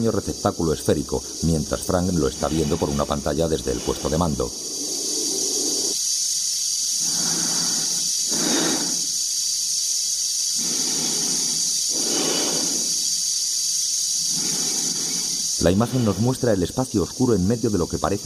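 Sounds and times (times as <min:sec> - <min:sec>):
speech: 0:00.0 - 0:04.7, 0:15.7 - 0:18.2
astronaut's breathing amplified through helmet transmitters: 0:01.1 - 0:06.0, 0:07.0 - 0:09.2, 0:10.5 - 0:13.4, 0:14.2 - 0:16.3.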